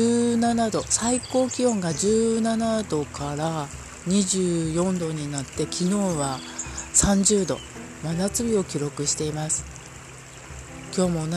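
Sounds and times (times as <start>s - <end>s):
speech: 0.0s - 9.8s, 11.0s - 11.3s
babbling river stream: 0.0s - 11.3s.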